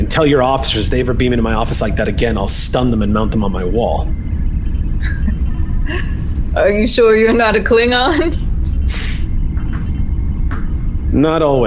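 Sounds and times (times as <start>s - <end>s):
speech: 0.0s - 4.3s, 5.0s - 9.0s, 11.1s - 11.6s
low hum: 0.0s - 11.6s
pneumatic hiss of sci-fi sliding door: 8.8s - 9.4s.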